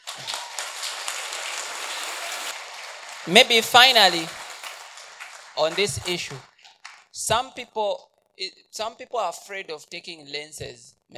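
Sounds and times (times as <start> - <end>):
audience clapping: 0.0 - 7.2
speech: 3.3 - 4.4, 5.6 - 6.5, 7.2 - 11.1.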